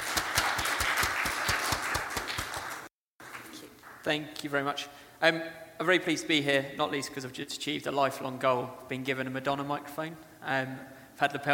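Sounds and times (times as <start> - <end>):
audience applause: 0.0 - 4.0
speech: 4.0 - 11.5.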